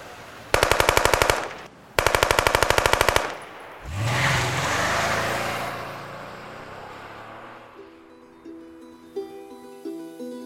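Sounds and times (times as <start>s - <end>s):
automatic gunfire: 0.5s - 3.8s
car engine revving and accelerating away: 3.8s - 8.4s.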